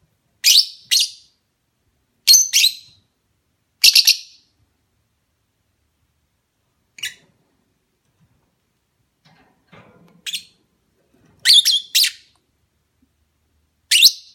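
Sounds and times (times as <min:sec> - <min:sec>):
lovebird mating call chirps: 0:00.4 - 0:01.4, 0:02.3 - 0:03.0, 0:03.8 - 0:04.5, 0:07.0 - 0:07.3, 0:10.2 - 0:10.6, 0:11.4 - 0:12.3, 0:13.9 - 0:14.3.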